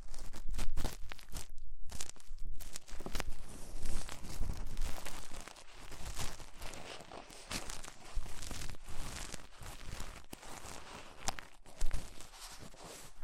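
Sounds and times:
ear cleaning crackling and scratching with rhinestones and clay: 0.0 - 13.2.

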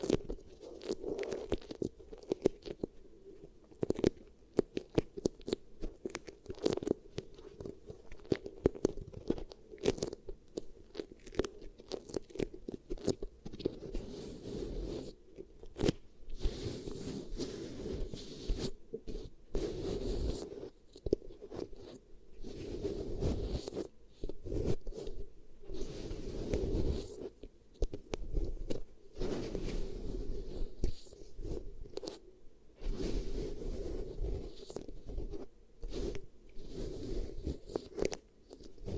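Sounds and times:
beeswax crackling and sticky crunches: 0.0 - 38.9.

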